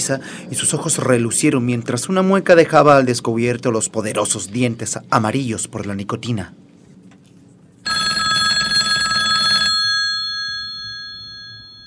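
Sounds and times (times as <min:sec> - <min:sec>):
speech: 0:00.0 - 0:06.7
telephone on a table ringing: 0:07.9 - 0:11.8.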